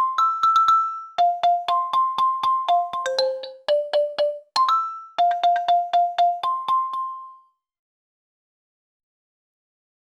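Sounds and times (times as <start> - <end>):
children's game background music: 0.0 - 7.3.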